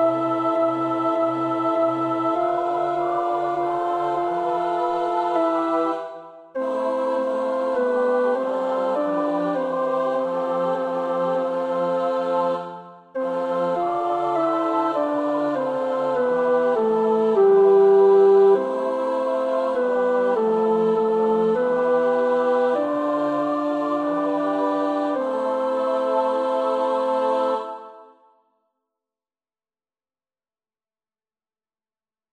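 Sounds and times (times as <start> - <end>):
tenor singing a prayer in Dutch: 0.0 - 28.0.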